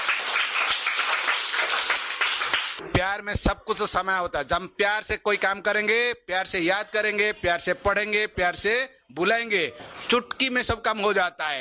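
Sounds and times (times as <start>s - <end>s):
audience applause: 0.0s - 2.8s
speech: 3.0s - 11.6s.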